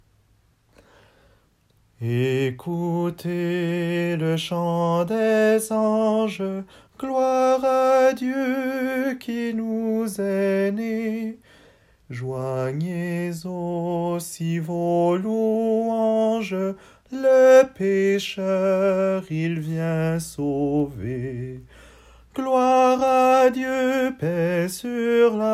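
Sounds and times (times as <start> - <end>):
soprano singing: 2.0 - 11.4, 12.1 - 21.7, 22.3 - 25.5.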